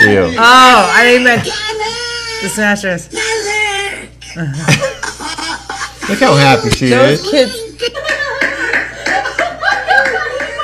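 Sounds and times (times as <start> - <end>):
speech: 0.2 - 3.3, 4.4 - 5.1, 6.1 - 8.2
laughter: 4.3 - 10.6
hands clapping: 8.4 - 10.6.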